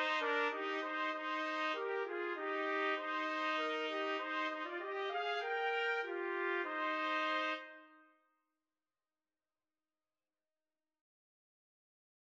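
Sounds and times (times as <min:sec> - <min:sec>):
trumpet trio playing a carol: 0:00.0 - 0:07.8.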